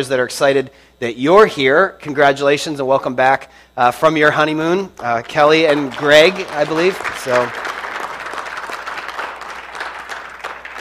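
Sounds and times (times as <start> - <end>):
speech: 0.0 - 7.7
audience applauding: 5.0 - 10.7.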